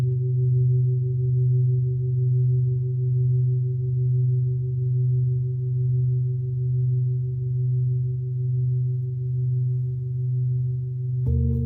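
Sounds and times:
Tibetan singing bowl drone: 0:00.0 - 0:11.6.

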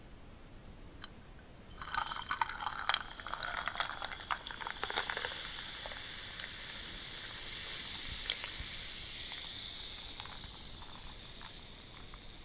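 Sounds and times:
carbonated tonic water pouring into a glass of gin: 0:01.1 - 0:12.3.

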